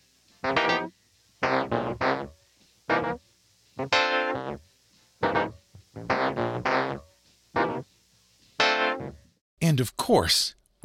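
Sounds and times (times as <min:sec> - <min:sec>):
funky keyboard part in funk song: 0:00.4 - 0:02.3, 0:02.9 - 0:03.2, 0:03.8 - 0:04.6, 0:05.2 - 0:07.0, 0:07.6 - 0:07.8, 0:08.6 - 0:09.2
speech: 0:09.8 - 0:10.8.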